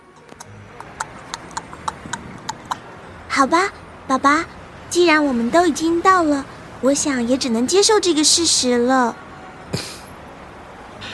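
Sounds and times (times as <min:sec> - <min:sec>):
hooves of a horse pulling a carriage: 0:00.2 - 0:02.8
speech: 0:03.4 - 0:09.9.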